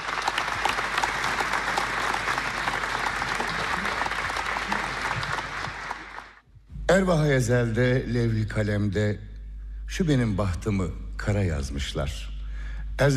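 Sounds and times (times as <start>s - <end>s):
audience applause for a folk singer and saz player: 0.0s - 6.4s
speech: 7.0s - 9.3s, 9.9s - 12.3s.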